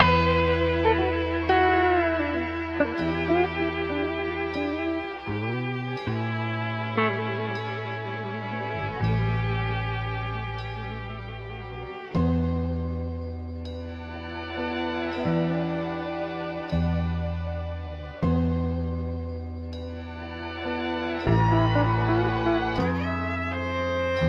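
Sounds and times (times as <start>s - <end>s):
sad guitar and strings: 0.0s - 24.2s.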